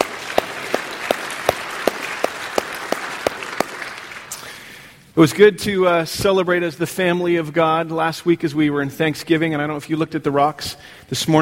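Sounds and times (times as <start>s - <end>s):
church congregation clapping to welcome newcomers: 0.0s - 4.7s
speech: 5.2s - 11.4s.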